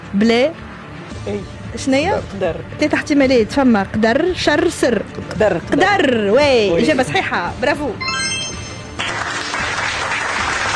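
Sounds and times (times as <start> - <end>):
speech: 0.1 - 0.6, 1.2 - 8.2
quiz show audience applause after a correct answer: 9.0 - 10.7.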